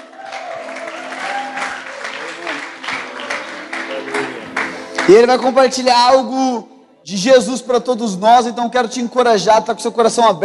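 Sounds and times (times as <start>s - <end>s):
audience applause: 0.0s - 5.6s
speech: 5.1s - 10.4s.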